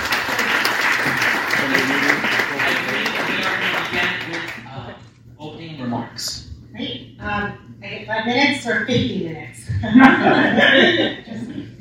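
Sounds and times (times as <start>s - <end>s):
audience applause at a community forum: 0.0s - 4.6s
speech: 8.2s - 11.2s
laughter: 9.8s - 11.7s.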